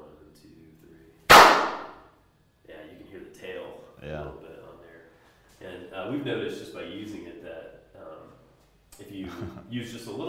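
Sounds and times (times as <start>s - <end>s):
hand claps echoing in a studio room: 1.3s - 2.0s
speech: 6.0s - 7.7s, 9.0s - 10.2s
laughter: 9.2s - 9.8s.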